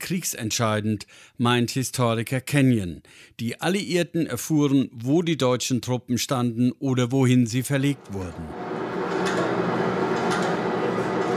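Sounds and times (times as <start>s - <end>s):
speech: 0.1s - 8.6s
Bombe codebreaking machine at Bletchley Park rollers turning: 7.9s - 11.3s.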